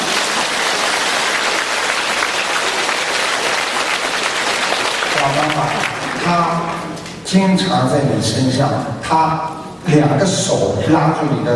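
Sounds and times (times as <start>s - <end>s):
audience applause: 0.0s - 6.9s
speech: 5.3s - 11.5s.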